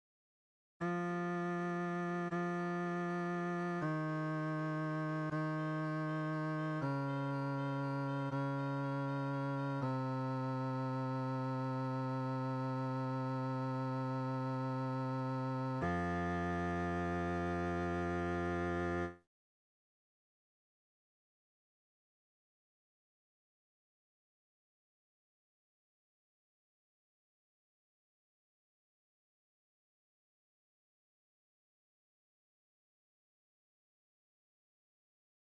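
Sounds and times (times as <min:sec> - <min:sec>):
bass: 0:00.8 - 0:19.3.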